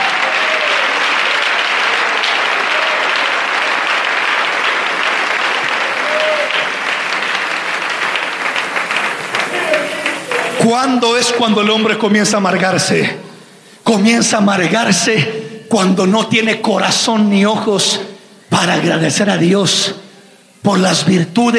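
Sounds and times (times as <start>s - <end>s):
audience applauding: 0.0s - 11.7s
speech: 10.7s - 13.2s, 13.9s - 20.0s, 20.6s - 21.5s.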